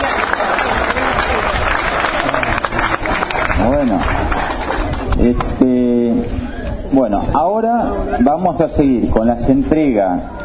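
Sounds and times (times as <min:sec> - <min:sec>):
audience applause: 0:00.0 - 0:05.5
speech: 0:05.2 - 0:10.4.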